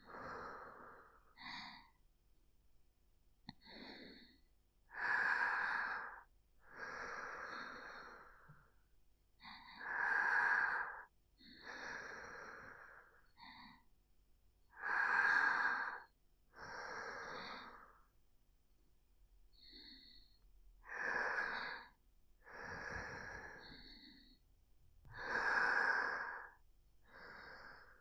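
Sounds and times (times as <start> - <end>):
sleeping breath: 3.6 - 8.8, 9.4 - 13.9, 14.7 - 18.1, 19.5 - 24.4, 25.0 - 27.9.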